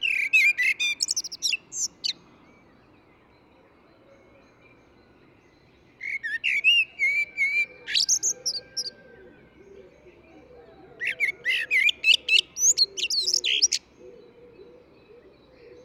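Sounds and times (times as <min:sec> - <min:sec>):
Eurasian blackbird singing: 0:00.0 - 0:15.8.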